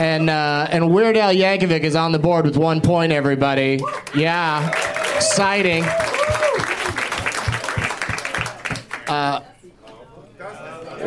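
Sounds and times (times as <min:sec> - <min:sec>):
speech: 0:00.0 - 0:06.8, 0:09.1 - 0:09.5
clapping: 0:03.8 - 0:09.2.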